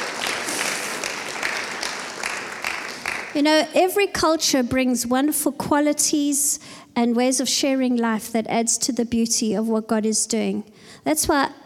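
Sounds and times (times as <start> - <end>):
crowd clapping: 0.0 - 3.4
speech: 3.4 - 11.6.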